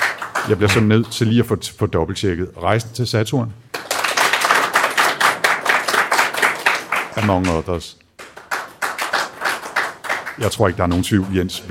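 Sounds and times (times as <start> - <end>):
audience clapping as a vote: 0.0 - 1.4, 3.7 - 11.6
speech: 0.5 - 3.6, 7.2 - 8.0, 10.4 - 11.6.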